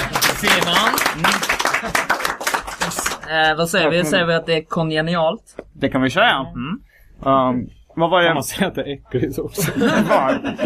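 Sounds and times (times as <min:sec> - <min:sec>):
audience clapping: 0:00.0 - 0:03.4
speech: 0:00.4 - 0:02.2, 0:03.3 - 0:10.6
laughter: 0:09.6 - 0:10.6.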